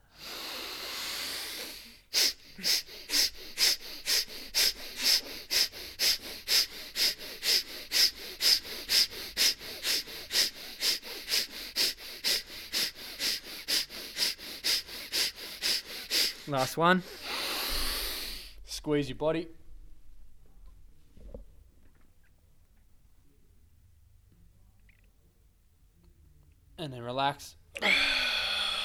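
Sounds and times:
lion's breath yoga breathing exhale: 0.0s - 18.6s, 27.8s - 28.8s
speech: 2.6s - 2.9s, 16.5s - 17.2s, 18.8s - 19.6s.

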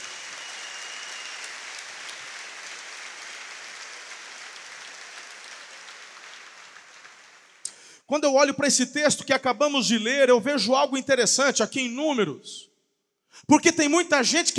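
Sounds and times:
crowd applause: 0.0s - 7.6s
speech: 8.1s - 12.7s, 13.4s - 14.5s.

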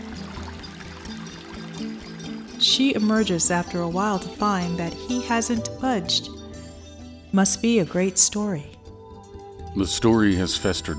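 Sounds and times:
running water in a bathroom: 0.0s - 5.4s
speech: 2.6s - 6.4s, 7.3s - 8.8s, 9.8s - 10.9s.

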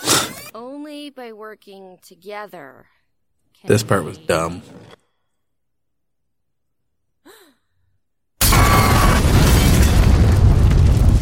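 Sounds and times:
speech: 0.6s - 3.0s, 3.6s - 5.0s
bomb explosion: 8.4s - 11.2s.

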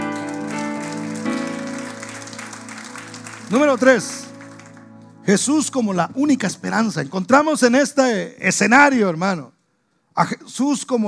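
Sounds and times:
audience applauding: 0.0s - 5.2s
speech: 3.5s - 4.3s, 5.3s - 9.6s, 10.2s - 11.0s.

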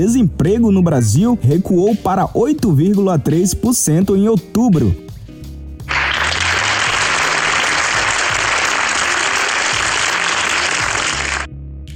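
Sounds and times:
speech: 0.0s - 5.1s
applause: 5.9s - 11.5s.

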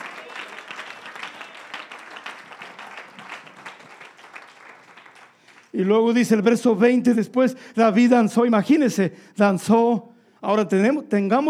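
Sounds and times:
audience applause: 0.0s - 5.7s
speech: 5.7s - 11.4s.

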